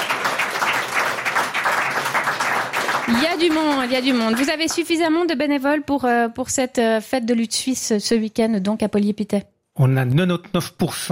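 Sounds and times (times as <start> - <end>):
audience applause: 0.0 - 5.0
speech: 3.1 - 11.1.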